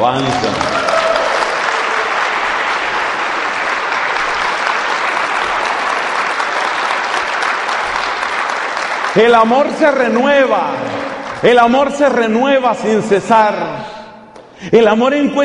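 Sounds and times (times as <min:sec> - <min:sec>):
speech: 0:00.0 - 0:00.8, 0:09.2 - 0:13.9, 0:14.6 - 0:15.4
audience applause: 0:00.0 - 0:11.8.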